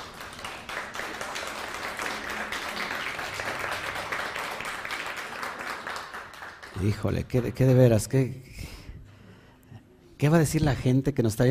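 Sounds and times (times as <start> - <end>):
audience applause: 0.0 - 7.5
speech: 6.8 - 8.5, 10.2 - 11.4.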